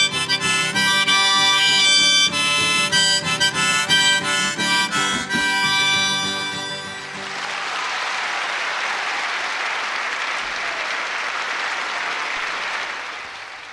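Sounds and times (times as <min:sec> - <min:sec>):
song: 0:00.0 - 0:07.6
audience applause at a 1964 concert: 0:06.8 - 0:13.7.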